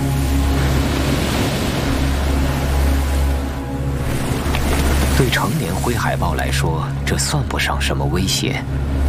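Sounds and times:
blustery sea wind: 0.0s - 5.5s
crashing sea surf: 0.0s - 6.4s
speech: 5.5s - 9.0s.

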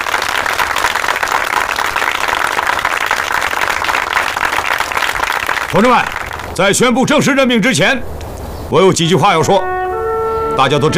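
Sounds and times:
audience applause: 0.0s - 6.6s
speech: 5.7s - 9.7s, 10.6s - 10.9s.

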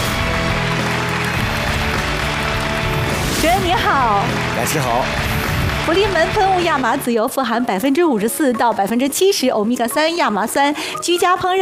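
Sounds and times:
audience applause welcoming a guest: 0.0s - 7.2s
speech: 4.0s - 5.2s, 5.8s - 11.6s.

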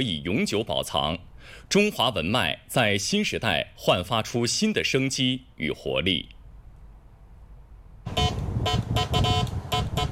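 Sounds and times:
speech: 0.0s - 6.4s
telegraph beeping from a 1970s telegraph control box: 8.1s - 10.1s.

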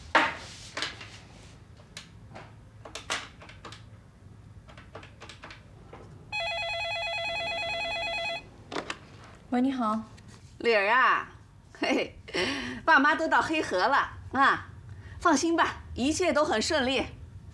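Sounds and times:
landline telephone ringing with electronic trill: 6.3s - 8.6s
speech: 9.5s - 17.2s.

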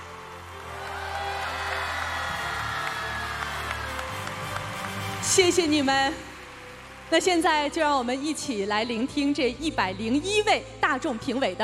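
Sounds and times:
audience applause: 0.0s - 8.2s
cheers and whoops: 0.3s - 7.0s
speech: 5.4s - 6.3s, 7.1s - 11.6s.

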